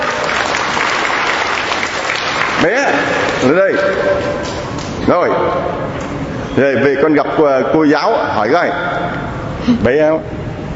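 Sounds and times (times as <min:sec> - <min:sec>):
audience applauding: 0:00.0 - 0:05.0
speech: 0:02.6 - 0:10.4.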